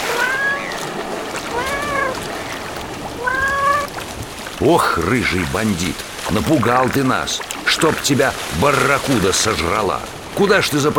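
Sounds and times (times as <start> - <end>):
domestic cat meowing: 0.0 - 4.0
speech: 4.6 - 10.9.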